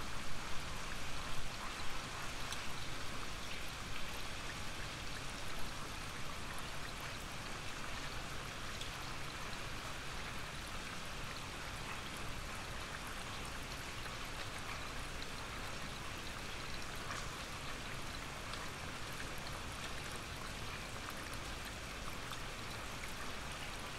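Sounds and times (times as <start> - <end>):
gentle rain: 0.0 - 23.9.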